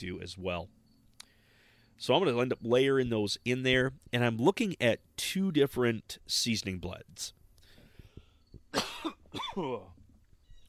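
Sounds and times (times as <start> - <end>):
speech: 0.0 - 0.8, 2.0 - 7.4, 8.7 - 10.0
person coughing and clearing throat: 8.7 - 10.0.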